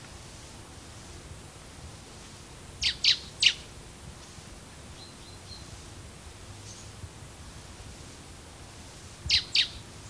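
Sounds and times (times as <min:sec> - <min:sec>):
Common blackbird sharp calls: 0:02.8 - 0:03.6, 0:09.3 - 0:09.8.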